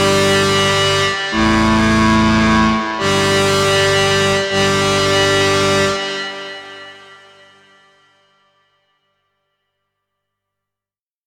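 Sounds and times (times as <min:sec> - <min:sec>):
aggressive motor synthesizer: 0:00.0 - 0:08.0.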